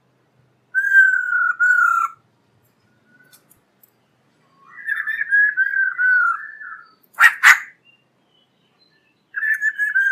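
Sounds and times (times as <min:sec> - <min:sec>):
black-throated laughingthrush song of whistles and a harsh burst: 0:00.7 - 0:02.2, 0:04.5 - 0:10.1.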